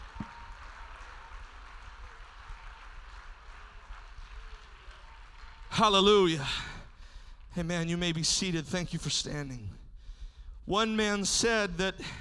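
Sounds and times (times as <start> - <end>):
audience hand clapping: 0.0 - 8.1
speech: 5.8 - 6.7, 7.6 - 9.8, 10.7 - 12.2.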